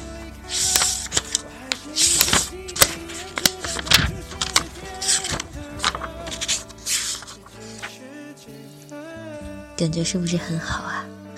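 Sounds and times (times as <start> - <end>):
pages of a book being flipped: 0.4 - 8.0
speech: 9.8 - 11.0.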